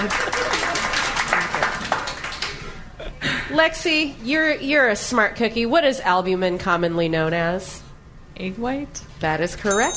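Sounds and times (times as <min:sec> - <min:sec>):
small studio audience clapping on a quiz show: 0:00.0 - 0:02.6
speech: 0:03.6 - 0:07.8, 0:08.4 - 0:09.9.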